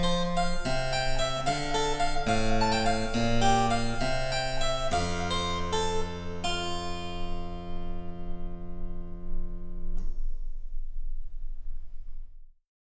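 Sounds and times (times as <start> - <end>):
harpsichord: 0.0 - 10.0.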